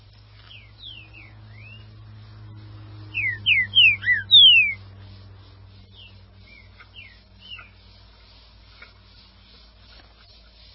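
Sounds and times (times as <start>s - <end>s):
Green-winged saltator song: 0.5s - 1.9s, 3.1s - 4.8s.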